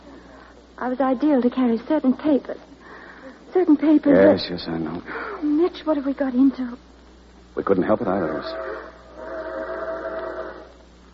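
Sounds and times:
speech: 0:00.8 - 0:02.7, 0:03.6 - 0:06.9, 0:07.6 - 0:08.8
train whistle: 0:08.1 - 0:10.8.

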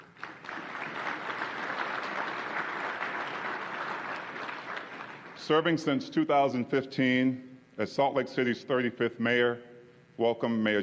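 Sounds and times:
audience applauding a guest on stage at a Salt Lake City event: 0:00.0 - 0:05.4
speech: 0:05.5 - 0:10.8.

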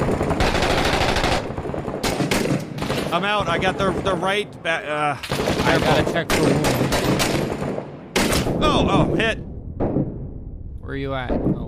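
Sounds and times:
automatic gunfire from an enemy shooting a building in Six Days in Fallujah: 0:00.0 - 0:03.2, 0:05.3 - 0:08.5
speech: 0:03.1 - 0:06.8, 0:08.6 - 0:09.5, 0:10.9 - 0:11.6.

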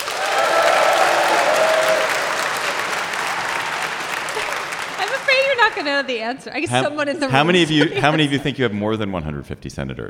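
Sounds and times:
crowd clapping: 0:00.0 - 0:06.8
laughter: 0:03.7 - 0:09.0
speech: 0:05.7 - 0:10.0.

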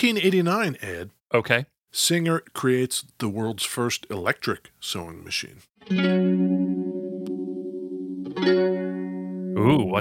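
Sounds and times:
speech: 0:00.0 - 0:06.6, 0:08.4 - 0:09.0, 0:09.6 - 0:10.0
electric guitar through fuzz and modulation pedals: 0:05.8 - 0:10.0.

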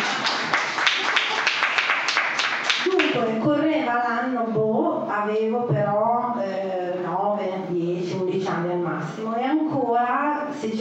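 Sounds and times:
audience applause: 0:00.0 - 0:03.2
speech: 0:03.4 - 0:10.8.

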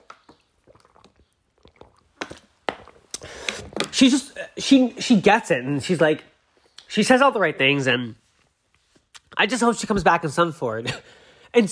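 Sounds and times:
person sipping water: 0:00.0 - 0:04.5
speech: 0:04.0 - 0:06.3, 0:06.9 - 0:08.2, 0:09.4 - 0:11.7.

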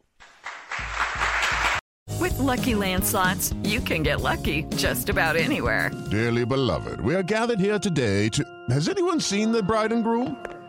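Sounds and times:
roaring round of applause: 0:00.2 - 0:01.8
speech: 0:02.2 - 0:10.6.

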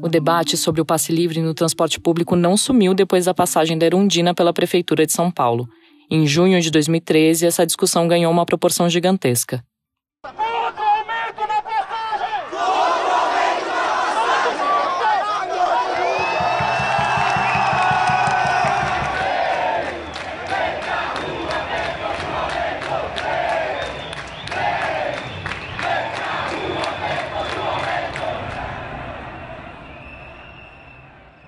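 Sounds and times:
speech: 0:00.1 - 0:10.4
large crowd shouting and cheering at a street protest in São Paulo: 0:10.2 - 0:31.4.

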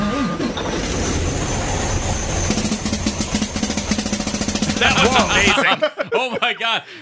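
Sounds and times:
truck engine rumble: 0:00.0 - 0:05.6
truck rattling bursts like snare drum hits: 0:00.0 - 0:05.6
laughter: 0:04.8 - 0:06.9
speech: 0:05.2 - 0:06.9.

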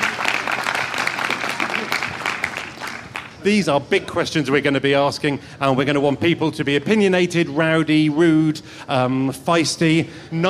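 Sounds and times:
audience applause for panellists: 0:00.0 - 0:03.4
speech: 0:03.4 - 0:10.4.

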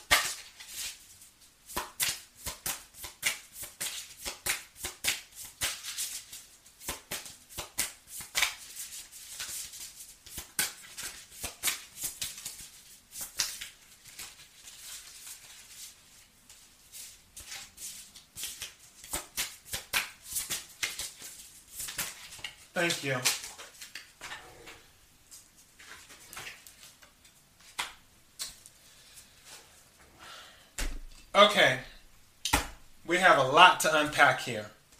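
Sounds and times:
playing cards being shuffled and drawn: 0:01.8 - 0:24.1
speech: 0:22.8 - 0:23.4, 0:31.4 - 0:31.9, 0:33.1 - 0:34.8.

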